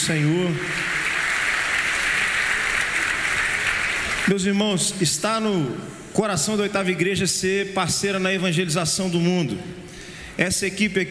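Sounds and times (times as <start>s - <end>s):
church audience applause: 0.0s - 4.3s
speech: 0.1s - 1.0s, 4.3s - 11.0s.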